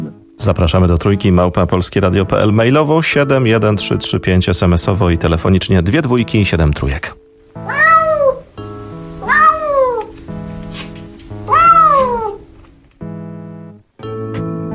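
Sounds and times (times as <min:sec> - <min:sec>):
speech: 0:00.4 - 0:07.8
cat meowing: 0:07.6 - 0:12.6.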